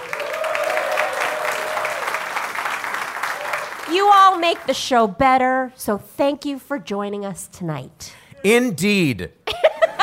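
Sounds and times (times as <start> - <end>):
audience applause: 0.0 - 4.7
speech: 3.9 - 9.4
laughter: 9.5 - 10.0.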